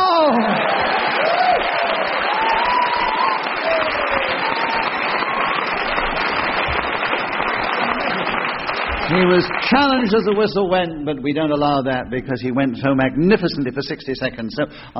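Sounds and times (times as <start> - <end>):
faint voiced whoops: 0.0 - 6.0
studio audience applause: 0.0 - 10.6
speech: 9.1 - 14.9.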